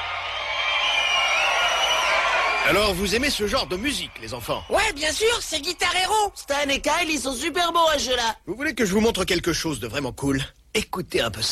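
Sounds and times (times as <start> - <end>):
video game crowd cheering: 0.0 - 8.1
speech: 2.7 - 11.5.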